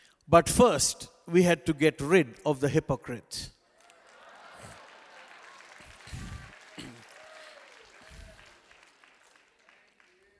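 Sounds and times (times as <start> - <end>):
speech: 0.3 - 3.6
audience clapping: 3.6 - 10.3
audience laughing: 4.0 - 6.5.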